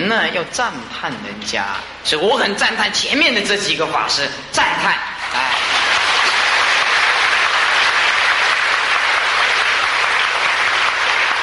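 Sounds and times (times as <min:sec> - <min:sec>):
speech: 0:00.1 - 0:05.6
crowd applause: 0:05.2 - 0:11.4.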